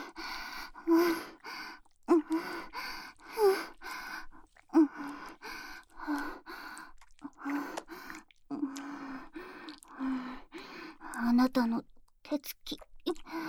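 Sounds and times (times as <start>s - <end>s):
ASMR ear licking: 0.7s - 11.3s, 12.0s - 13.3s
ASMR deep kissing: 7.3s - 8.9s.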